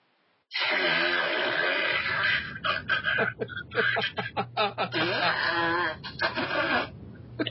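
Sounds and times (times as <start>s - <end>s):
voice imitating continuous farting: 0.5s - 3.4s, 5.0s - 7.4s
laughter: 2.4s - 6.8s.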